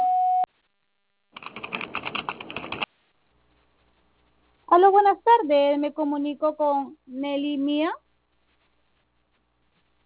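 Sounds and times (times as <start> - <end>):
voicemail recording tone on a phone line: 0.0 - 0.5
crackly band-limited noise: 0.6 - 4.8, 8.0 - 10.0
speech: 4.8 - 8.0.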